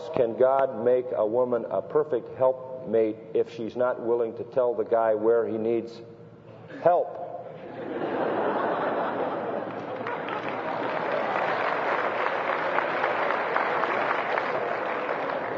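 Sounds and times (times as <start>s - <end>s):
speech: 0.2s - 6.1s, 6.8s - 7.2s
laughter: 7.5s - 14.0s
women clapping: 9.6s - 15.5s.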